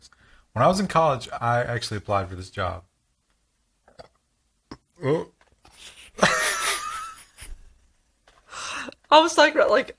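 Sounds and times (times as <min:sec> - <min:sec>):
speech: 0:00.5 - 0:02.9, 0:05.0 - 0:05.4, 0:09.1 - 0:09.9
drawn-out burp: 0:03.9 - 0:05.4.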